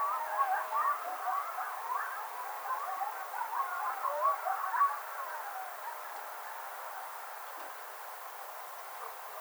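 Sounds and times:
coyote chorus of yips, warbles and short howls: 0:00.0 - 0:06.8.

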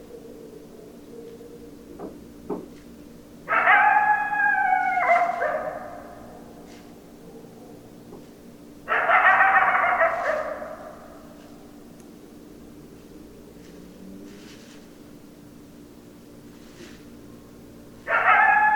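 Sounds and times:
coyotes howling: 0:00.0 - 0:02.0, 0:03.4 - 0:08.2, 0:08.8 - 0:11.8, 0:18.0 - 0:18.7.

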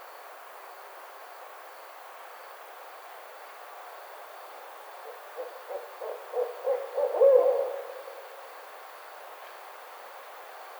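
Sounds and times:
barred owl hooting: 0:05.4 - 0:08.0.

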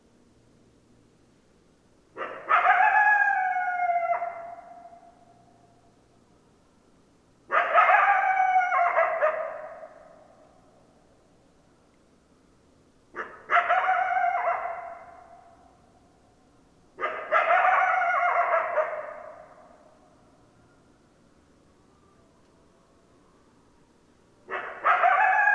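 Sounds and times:
several coyotes howling: 0:02.2 - 0:05.2, 0:07.5 - 0:10.3, 0:13.2 - 0:15.6, 0:17.1 - 0:19.8, 0:24.5 - 0:25.5.

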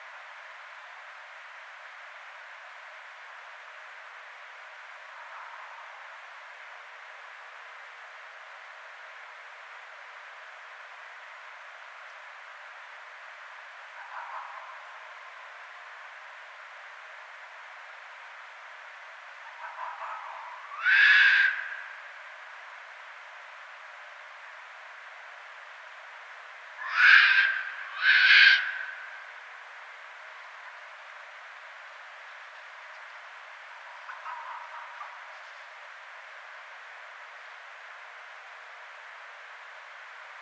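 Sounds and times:
red fox calling: 0:14.0 - 0:14.9, 0:19.4 - 0:22.0, 0:26.8 - 0:29.2, 0:33.9 - 0:35.3.

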